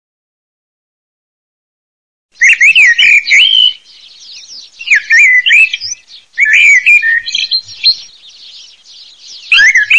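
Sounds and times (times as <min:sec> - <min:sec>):
common blackbird song: 0:02.3 - 0:09.9.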